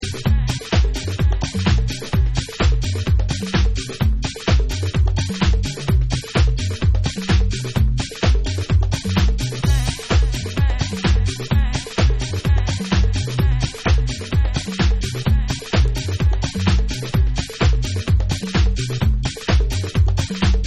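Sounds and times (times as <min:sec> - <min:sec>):
music beat: 0:00.0 - 0:20.6.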